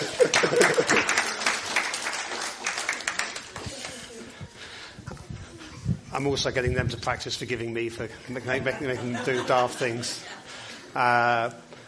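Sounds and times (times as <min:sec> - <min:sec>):
laughter: 0:00.0 - 0:01.5, 0:08.3 - 0:10.7
audience clapping: 0:00.0 - 0:04.3
speech: 0:06.2 - 0:11.7.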